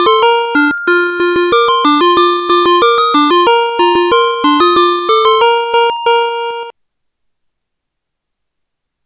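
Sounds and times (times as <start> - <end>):
B chord: 0.0 - 6.7.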